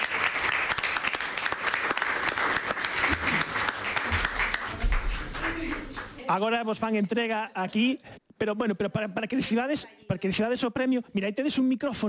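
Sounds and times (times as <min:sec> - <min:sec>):
audience applause: 0:00.0 - 0:06.2
speech: 0:06.3 - 0:12.0.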